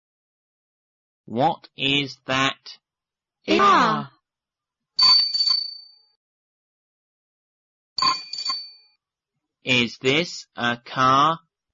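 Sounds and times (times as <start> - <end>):
speech: 1.3 - 2.8, 3.4 - 4.2, 9.6 - 11.4
bicycle bell ringing: 5.0 - 6.1, 8.0 - 9.0.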